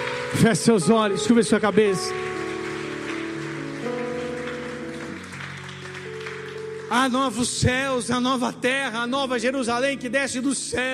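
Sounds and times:
audience applause: 0.0 - 7.6
organ chords: 0.0 - 10.9
speech: 0.3 - 2.3, 6.9 - 10.9.

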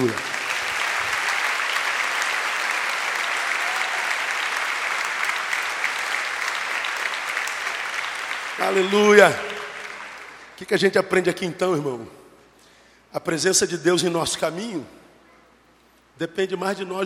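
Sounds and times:
speech: 0.0 - 0.3, 8.6 - 9.5, 10.6 - 12.2, 13.1 - 15.0, 16.2 - 17.0
audience applauding: 0.0 - 10.6.

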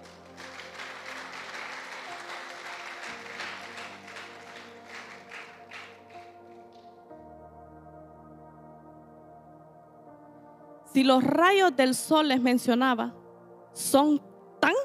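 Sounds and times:
loud audience applause: 0.0 - 6.4
speech: 11.0 - 13.2, 13.8 - 14.2.

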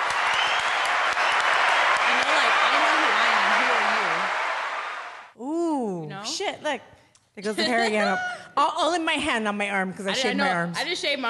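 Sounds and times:
round of applause: 0.0 - 5.3
speech: 6.5 - 11.2.

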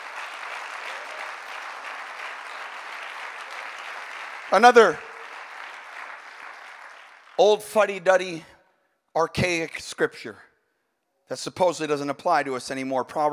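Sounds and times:
audience clapping hands: 0.0 - 8.0
speech: 4.5 - 5.1, 7.4 - 8.5, 9.2 - 10.5, 11.3 - 13.3.

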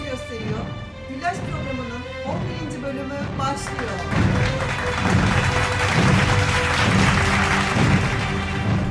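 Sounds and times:
speech: 0.2 - 6.1
applause: 3.4 - 8.8.

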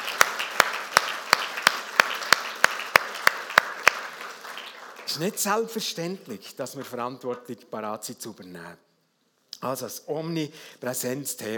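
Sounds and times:
steady rhythmic audience applause: 0.0 - 5.7
speech: 5.2 - 8.9, 9.6 - 11.5.

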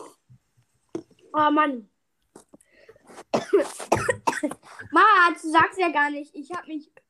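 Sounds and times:
speech: 1.4 - 1.9, 3.6 - 7.0
person coughing after choking on a drink: 3.3 - 5.0.

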